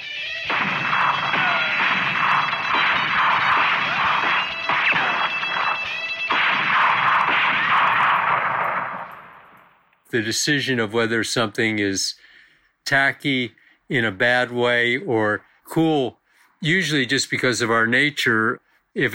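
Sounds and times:
gunshot sound effect: 0.4s - 9.8s
speech: 10.1s - 12.2s, 12.8s - 19.1s.

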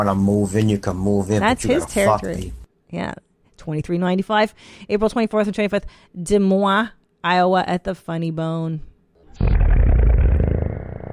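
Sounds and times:
speech: 0.0s - 9.6s
slow drawn-out fart: 9.3s - 11.1s.

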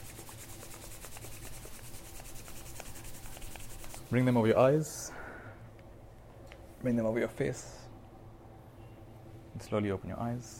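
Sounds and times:
palms rubbing together: 0.0s - 4.5s
speech: 4.1s - 5.2s, 6.8s - 7.8s, 9.6s - 10.5s.

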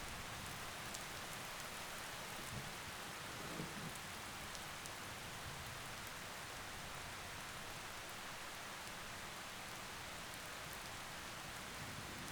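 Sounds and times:
steady rain: 0.0s - 12.3s.

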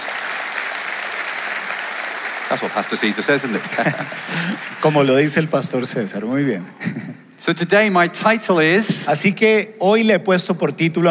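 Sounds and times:
audience applauding: 0.0s - 6.1s
speech: 2.5s - 11.0s
laughter: 3.1s - 5.1s.

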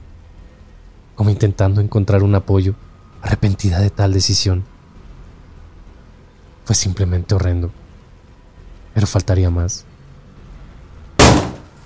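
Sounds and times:
speech: 1.2s - 4.7s, 6.7s - 7.8s, 9.0s - 9.9s
door slamming shut: 11.2s - 11.8s.

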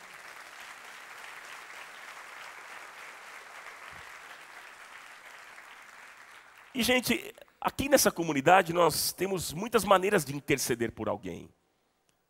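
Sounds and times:
audience applause: 0.0s - 6.8s
speech: 6.8s - 11.6s.

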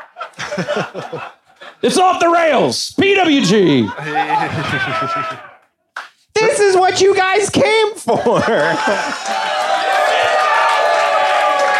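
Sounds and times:
laughter: 0.0s - 1.8s, 3.3s - 5.7s, 8.0s - 9.8s
speech: 0.6s - 5.5s, 6.6s - 9.5s
audience booing: 3.3s - 5.7s, 8.4s - 11.7s.

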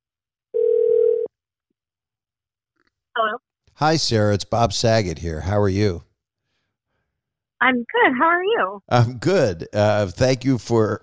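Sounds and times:
phone ringback tone during outgoing call: 0.6s - 1.3s
speech: 3.2s - 6.1s, 7.6s - 11.0s.

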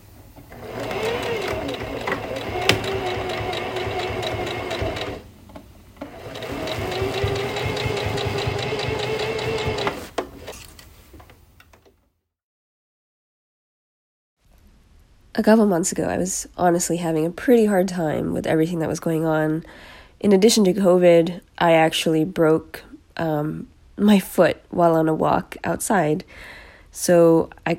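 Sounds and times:
sewing machine stitching fabric: 0.5s - 5.3s, 6.0s - 10.6s
speech: 15.4s - 27.7s.

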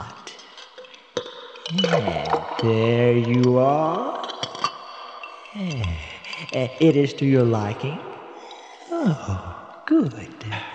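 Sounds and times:
glass clinking: 0.4s - 7.3s
speech: 1.7s - 4.2s, 5.6s - 8.1s, 9.0s - 10.7s.

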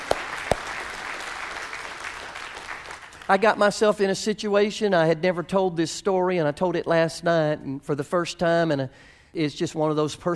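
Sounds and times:
hand clapping: 0.0s - 3.4s
speech: 3.3s - 10.3s.

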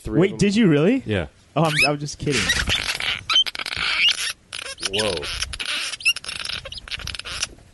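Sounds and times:
speech: 0.0s - 2.7s, 4.9s - 5.4s
baby birds chirping in a nest: 1.6s - 7.5s.

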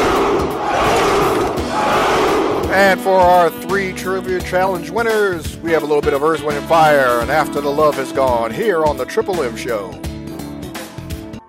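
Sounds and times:
audience giving a Spartan battle cheer: 0.0s - 3.4s
speech: 2.8s - 10.1s.

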